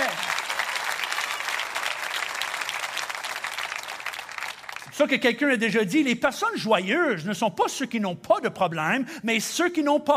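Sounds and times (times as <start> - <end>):
audience applauding: 0.0 - 5.0
speech: 5.0 - 10.1.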